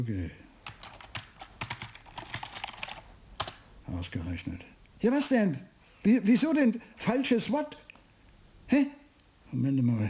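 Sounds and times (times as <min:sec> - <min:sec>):
speech: 0:00.0 - 0:00.4, 0:03.9 - 0:07.8, 0:08.7 - 0:10.0
typing a codeword on a computer keyboard: 0:00.6 - 0:03.6.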